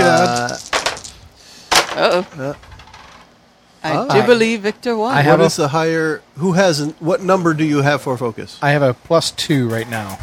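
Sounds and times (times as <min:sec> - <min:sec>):
dice being rolled: 0:00.0 - 0:03.3
speech: 0:02.0 - 0:02.7, 0:03.8 - 0:10.2.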